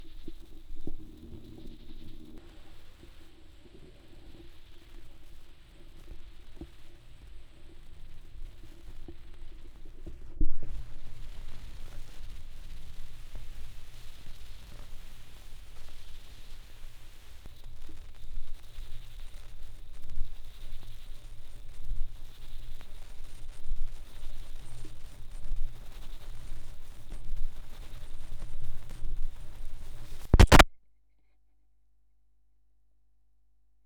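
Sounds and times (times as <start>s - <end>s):
vinyl record crackle with tape echo: 0.0s - 30.7s.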